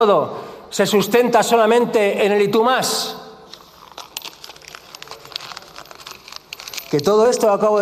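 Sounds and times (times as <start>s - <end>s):
speech: 0.0s - 3.2s, 6.9s - 7.8s
sheet of paper crumpled by hand: 3.5s - 7.8s.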